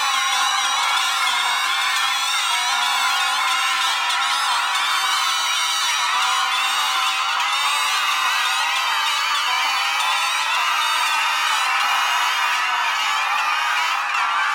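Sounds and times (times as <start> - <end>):
bagpipe: 0.0 - 14.5
geese honking: 0.0 - 14.5.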